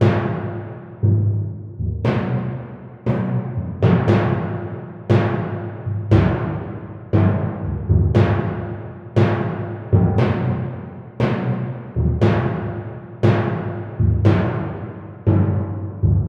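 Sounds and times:
timpani: 0:00.0 - 0:16.2.

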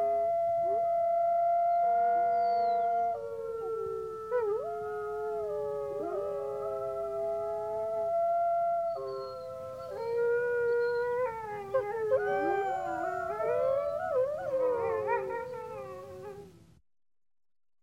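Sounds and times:
wolves howling together: 0:00.0 - 0:16.5.

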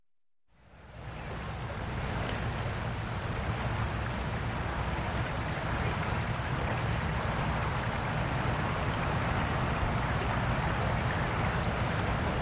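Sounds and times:
cicada piercing high-pitched drone with lower pulsing layer: 0:00.6 - 0:12.4.

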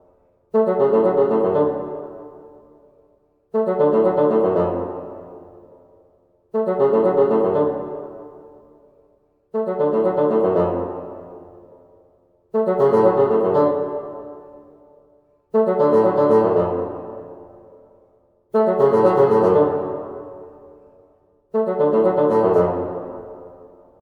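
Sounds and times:
bassoon: 0:00.6 - 0:02.4, 0:03.6 - 0:05.6, 0:06.6 - 0:08.4, 0:09.6 - 0:11.6, 0:12.6 - 0:14.8, 0:15.5 - 0:17.7, 0:18.5 - 0:20.8, 0:21.5 - 0:23.8.

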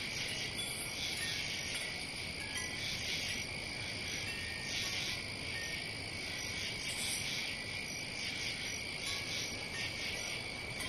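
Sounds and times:
cricket calling: 0:00.0 - 0:10.8.

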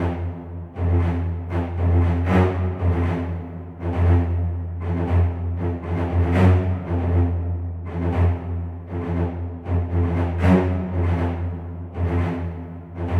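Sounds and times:
cello at 118 bpm: 0:00.0 - 0:13.1.

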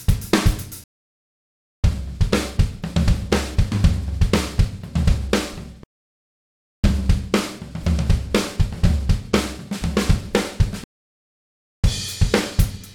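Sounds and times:
modern rock drumbeat at 120 BPM: 0:00.0 - 0:00.8, 0:01.8 - 0:05.6, 0:06.8 - 0:10.8, 0:11.9 - 0:12.9.

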